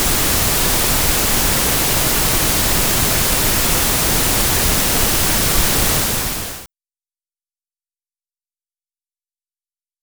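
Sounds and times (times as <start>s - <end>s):
mono pink noise: 0.0s - 6.7s.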